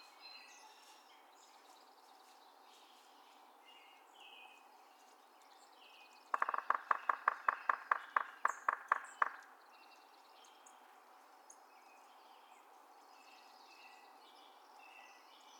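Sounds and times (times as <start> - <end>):
Yellow-bellied Sapsucker drumming: 6.2 - 9.6.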